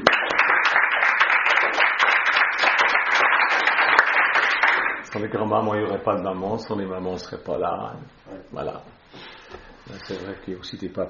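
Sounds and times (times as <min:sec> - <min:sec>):
audience applause: 0:00.0 - 0:05.1
speech: 0:05.2 - 0:09.0, 0:09.9 - 0:11.0.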